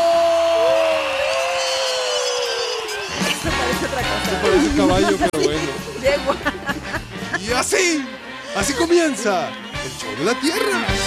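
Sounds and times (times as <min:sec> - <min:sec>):
audience applause: 0:00.0 - 0:05.4
laughter: 0:03.0 - 0:08.9
speech: 0:04.3 - 0:06.8, 0:07.4 - 0:11.0.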